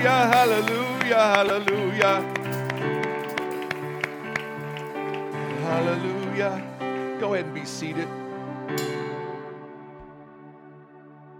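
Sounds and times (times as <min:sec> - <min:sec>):
speech: 0:00.0 - 0:03.0, 0:05.7 - 0:09.0
audience clapping hands in praise: 0:00.0 - 0:06.8.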